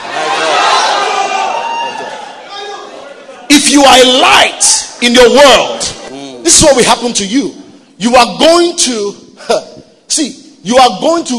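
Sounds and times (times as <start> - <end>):
audience shouting to neighbors: 0.0 - 4.7
speech: 3.7 - 11.3.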